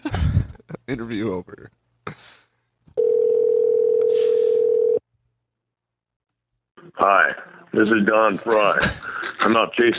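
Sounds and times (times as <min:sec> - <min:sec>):
speech: 0:00.9 - 0:01.8, 0:07.0 - 0:09.9
ringback tone of an outgoing phone call: 0:03.0 - 0:05.0.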